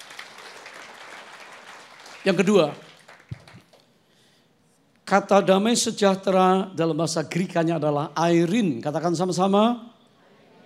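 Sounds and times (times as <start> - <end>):
audience applause: 0.0 - 3.8
speech: 2.2 - 2.9, 5.1 - 9.9.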